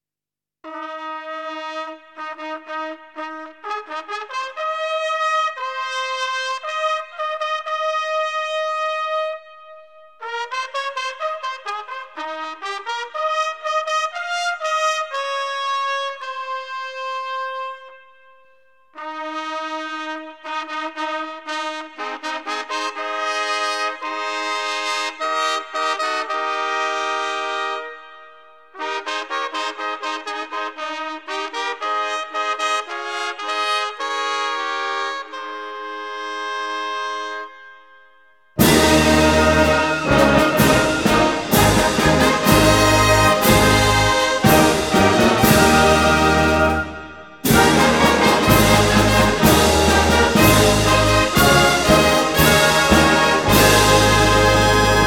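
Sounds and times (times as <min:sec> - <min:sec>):
trumpet call: 0:00.7 - 0:38.0, 0:38.6 - 0:55.0.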